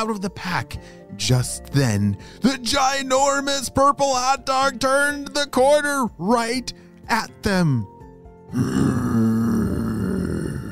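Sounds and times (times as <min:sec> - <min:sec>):
speech: 0:00.0 - 0:07.9, 0:08.5 - 0:08.9
voice imitating a monster's big growl: 0:08.5 - 0:10.7.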